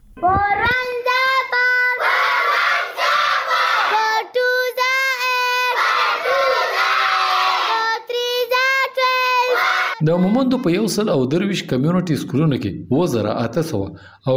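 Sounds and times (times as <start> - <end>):
schoolchildren chanting at community schools in Mohmand: 0.8 - 10.9
speech: 10.0 - 14.3.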